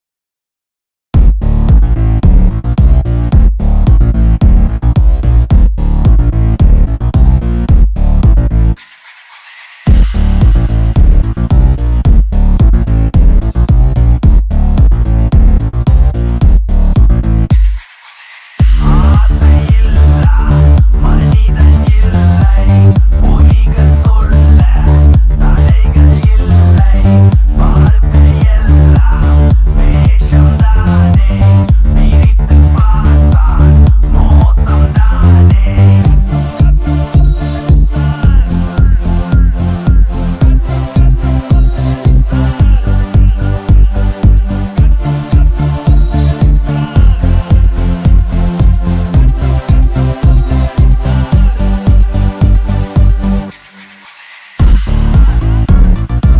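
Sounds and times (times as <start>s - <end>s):
boosted bass: 1.2s - 8.8s, 9.9s - 17.8s, 18.6s - 53.6s, 54.6s - 56.3s.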